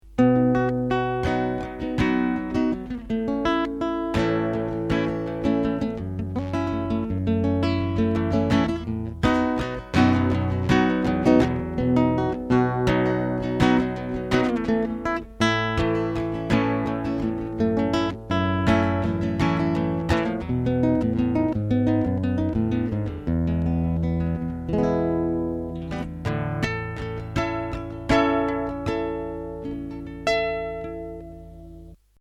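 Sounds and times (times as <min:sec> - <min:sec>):
mandolin: 0:00.0 - 0:32.1.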